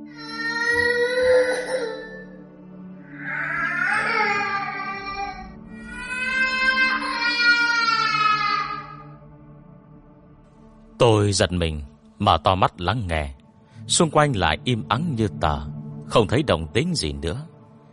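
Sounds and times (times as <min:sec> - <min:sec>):
child crying outside: 0:00.2 - 0:02.4, 0:03.1 - 0:09.2
speech: 0:11.0 - 0:17.5.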